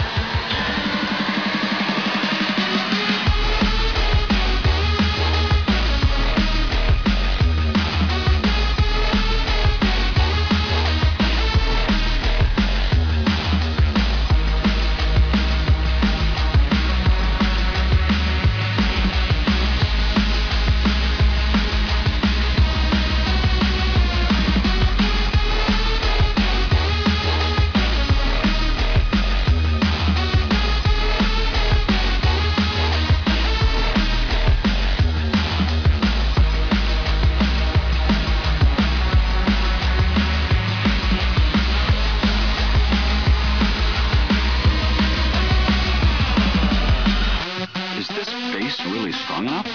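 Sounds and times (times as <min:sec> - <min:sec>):
music: 0:00.0 - 0:49.7.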